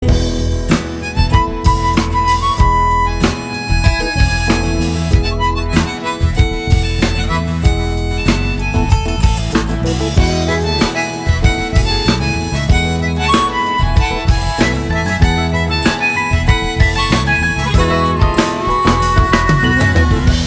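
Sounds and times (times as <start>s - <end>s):
romantic background music: 0.0s - 20.4s.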